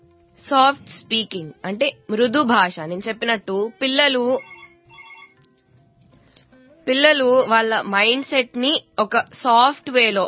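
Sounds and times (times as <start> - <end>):
speech: 0.4 - 4.5, 6.9 - 10.2
phone ringtone for an incoming call: 3.6 - 5.5.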